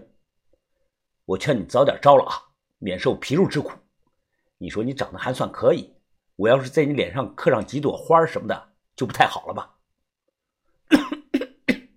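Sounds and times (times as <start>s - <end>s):
speech: 1.3s - 3.8s, 4.6s - 9.7s
forceful coughing: 10.9s - 11.9s.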